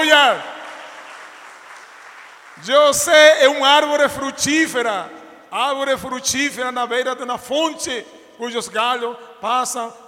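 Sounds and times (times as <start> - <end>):
crowd clapping: 0.0 - 3.4
speech: 0.3 - 0.6, 2.6 - 10.0.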